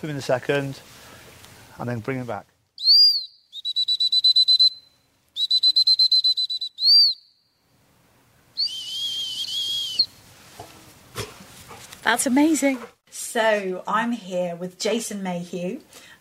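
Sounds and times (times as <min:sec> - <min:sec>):
speech: 0:00.0 - 0:01.0, 0:01.8 - 0:02.5, 0:12.1 - 0:16.2
trainer's whistle working a gun dog: 0:02.8 - 0:07.6, 0:08.6 - 0:10.2.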